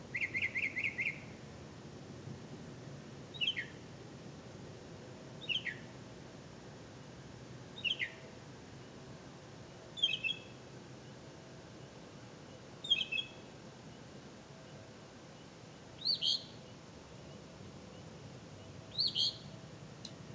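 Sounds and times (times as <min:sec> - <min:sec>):
bird: 0:00.1 - 0:01.3, 0:03.3 - 0:03.8, 0:05.4 - 0:05.9, 0:07.8 - 0:08.2, 0:10.0 - 0:10.6, 0:11.8 - 0:19.7.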